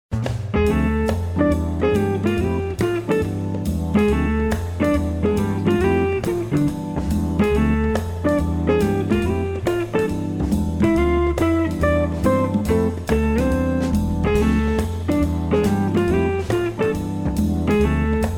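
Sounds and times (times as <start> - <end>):
light jazz groove: 0.1 - 18.3.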